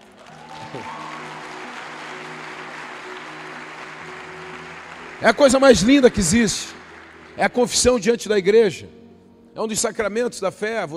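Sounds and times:
audience applauding: 0:00.0 - 0:08.0
speech: 0:00.7 - 0:01.0, 0:05.2 - 0:06.8, 0:07.4 - 0:09.0, 0:09.6 - 0:10.9.

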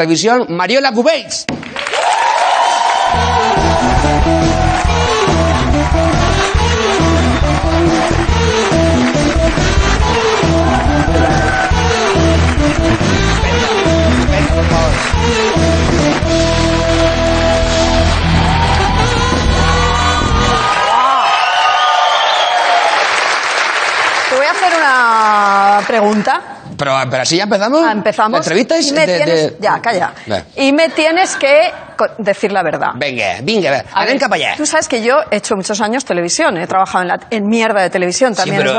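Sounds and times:
speech: 0:00.0 - 0:02.2, 0:03.1 - 0:04.2, 0:14.4 - 0:16.9, 0:24.6 - 0:38.7
audience applause: 0:01.6 - 0:26.4.

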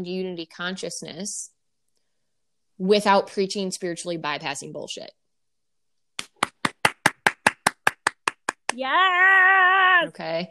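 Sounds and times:
speech: 0:00.0 - 0:01.6, 0:02.8 - 0:05.2, 0:08.8 - 0:10.4
single pair of hands clapping: 0:06.2 - 0:08.9.

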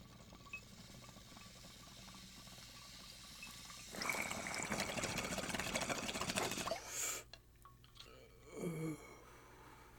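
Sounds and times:
bong water bubbling and gurgling: 0:00.0 - 0:06.8
person vocalizing: 0:08.5 - 0:09.2.

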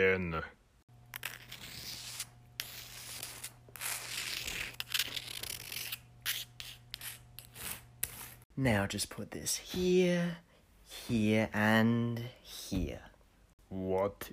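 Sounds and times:
speech: 0:00.0 - 0:00.6, 0:08.6 - 0:13.1, 0:13.7 - 0:14.3
chalk scraping on a floor drawing a circle: 0:01.1 - 0:08.5.

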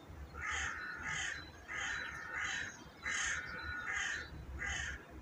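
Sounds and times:
loud harsh caws: 0:00.3 - 0:05.0
birds calling: 0:00.3 - 0:05.1.

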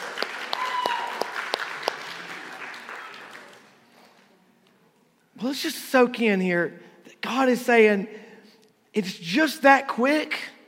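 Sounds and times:
audience scattered hand claps: 0:00.0 - 0:03.7
speech: 0:05.4 - 0:08.2, 0:09.0 - 0:10.5.

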